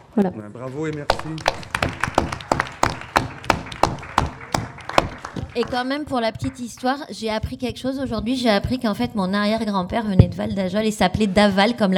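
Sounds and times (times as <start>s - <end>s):
speech: 0.2s - 2.5s, 5.6s - 11.9s
audience applause: 1.0s - 6.6s.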